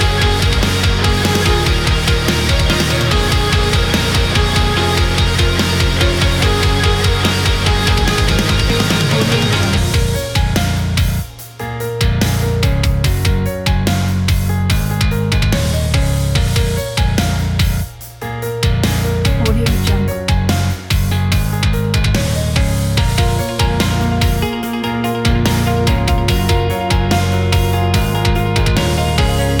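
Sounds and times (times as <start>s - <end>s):
epic metal music: 0.0s - 29.5s.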